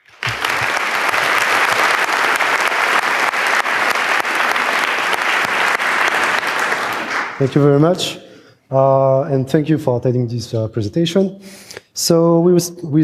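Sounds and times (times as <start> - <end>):
audience applause: 0.0 - 7.8
speech: 7.4 - 13.0.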